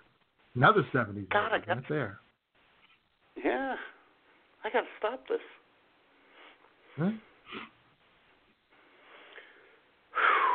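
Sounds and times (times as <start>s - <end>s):
speech: 0.5s - 2.2s, 4.6s - 5.6s, 7.0s - 7.7s
deep breath: 8.8s - 10.5s.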